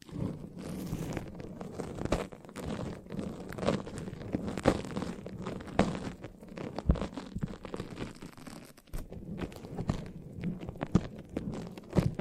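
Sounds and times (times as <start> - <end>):
foamy sticky squishing from a massage: 0.0 - 12.1
sharp clicks and pops: 0.0 - 12.1.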